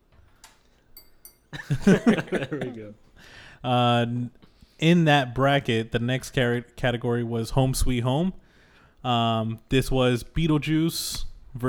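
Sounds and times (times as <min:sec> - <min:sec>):
glass being tapped: 0:00.9 - 0:02.1
laughter: 0:01.5 - 0:03.0
speech: 0:01.6 - 0:08.4, 0:09.0 - 0:11.6.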